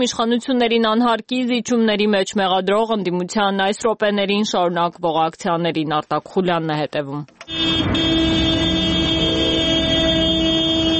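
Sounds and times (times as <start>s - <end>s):
speech: 0.0s - 8.2s
car horns honking during an opposition protest motorcade through Yerevan: 7.4s - 10.9s
traffic rumble: 7.4s - 10.9s.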